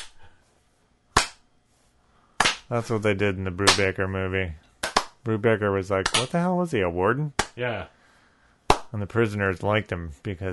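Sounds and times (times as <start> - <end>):
hand clapping: 0.0 - 0.3, 1.1 - 1.5, 2.4 - 2.8, 3.6 - 4.0, 4.8 - 5.2, 6.0 - 6.4, 7.3 - 7.6, 8.7 - 8.9
speech: 2.7 - 4.6, 5.2 - 8.0, 8.9 - 10.5.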